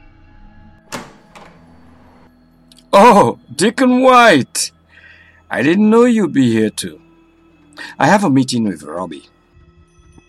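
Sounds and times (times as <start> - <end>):
knocks on an office door: 0.9 - 2.1
speech: 3.0 - 4.8, 5.5 - 7.0, 7.8 - 9.4.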